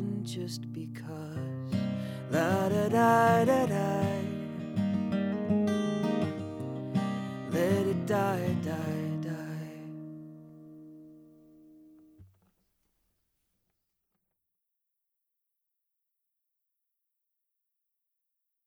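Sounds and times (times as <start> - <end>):
music recorded with a USB cardioid microphone: 0.0 - 12.4.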